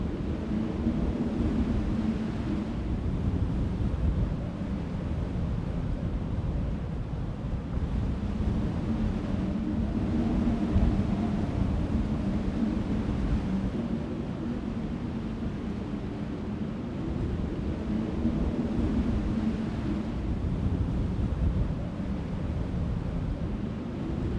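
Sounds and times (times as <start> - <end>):
wind: 0.0 - 24.3.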